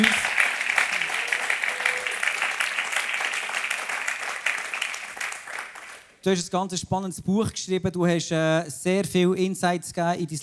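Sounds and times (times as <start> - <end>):
audience applause: 0.0 - 6.2
speech: 6.2 - 10.4.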